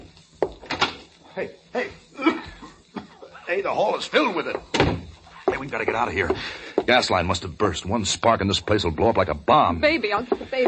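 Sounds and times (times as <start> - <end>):
speech: 1.4 - 2.4, 3.5 - 4.9, 5.6 - 10.6
door to the hall opening: 4.6 - 5.1.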